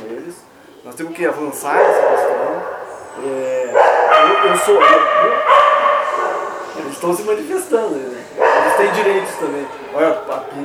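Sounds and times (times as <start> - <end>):
speech: 0.9 - 5.6, 6.8 - 10.6
dog barking and yipping on a university campus: 1.6 - 3.1, 3.7 - 6.9, 8.4 - 9.8.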